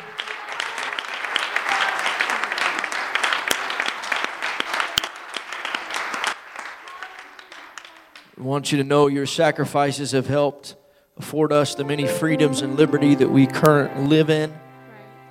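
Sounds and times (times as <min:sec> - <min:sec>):
audience applause, standing ovation: 0:00.0 - 0:08.3
speech: 0:08.4 - 0:14.6.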